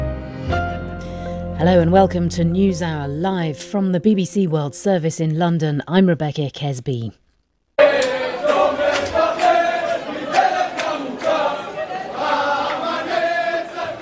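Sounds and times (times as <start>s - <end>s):
speech: 1.6s - 7.2s
jubilant crowd chanting at Ben Gurion Airport in Tel Aviv: 7.8s - 14.0s.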